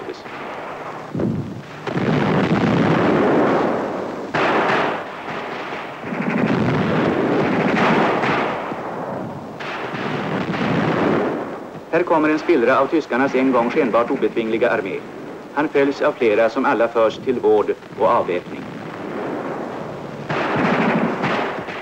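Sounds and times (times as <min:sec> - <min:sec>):
heavy rumbling blasts in battle: 0:00.0 - 0:21.8
rapid gunfire in battle: 0:00.2 - 0:09.0, 0:09.6 - 0:11.6, 0:17.8 - 0:21.8
speech: 0:12.0 - 0:18.8.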